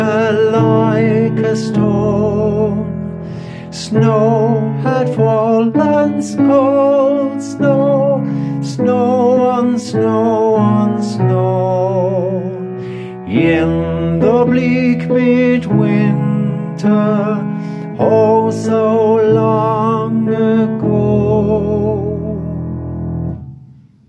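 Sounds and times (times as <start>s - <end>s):
tenor voice singing: 0.0s - 22.7s.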